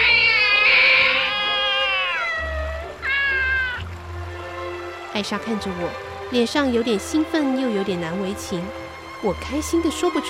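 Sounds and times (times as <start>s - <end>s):
lion cub crying plaintively: 0.0s - 4.0s
speech: 5.2s - 10.2s.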